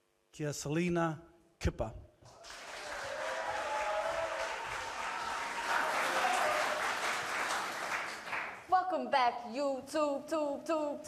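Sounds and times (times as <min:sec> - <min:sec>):
speech: 0:00.4 - 0:02.1, 0:08.9 - 0:11.0
audience applause: 0:02.3 - 0:08.6.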